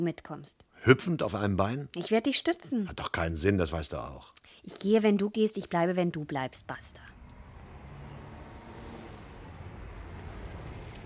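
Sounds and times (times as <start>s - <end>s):
speech: 0.0s - 7.1s
car approaching: 6.7s - 11.0s.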